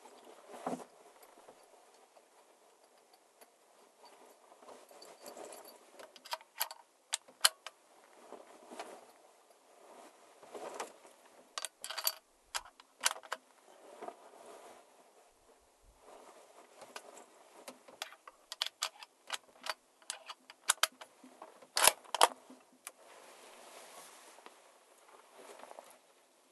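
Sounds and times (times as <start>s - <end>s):
rustling during preparations at an elk tower: 0.0s - 3.1s, 3.7s - 26.5s
quiet hiss: 0.0s - 26.5s
clicks and clatter of unpacking at an elk tower: 5.5s - 7.8s, 11.6s - 13.4s, 16.8s - 23.0s.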